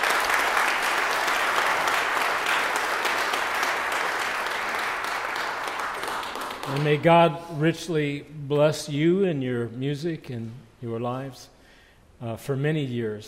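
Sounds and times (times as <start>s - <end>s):
applause from a large group: 0.0s - 7.2s
speech: 6.8s - 11.6s, 12.2s - 13.2s.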